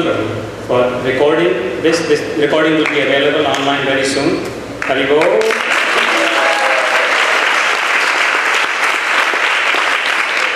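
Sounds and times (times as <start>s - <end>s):
speech: 0.0s - 5.5s
crowd applauding: 4.8s - 10.5s.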